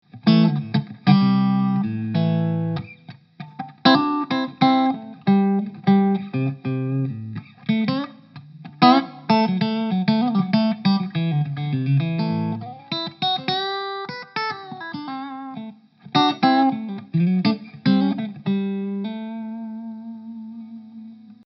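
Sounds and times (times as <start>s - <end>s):
VOX MV50 Boutique amp clean Stratocaster tone: 0.0s - 21.4s.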